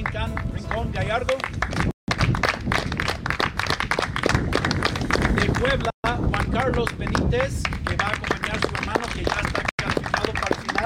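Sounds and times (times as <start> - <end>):
speech: 0.1 - 1.9, 6.7 - 9.5
audience applause: 1.6 - 5.8, 7.8 - 10.8.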